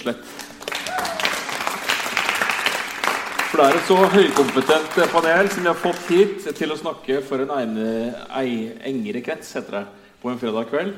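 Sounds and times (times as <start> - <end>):
speech: 0.0 - 0.4, 3.5 - 10.9
audience applause: 0.4 - 6.3.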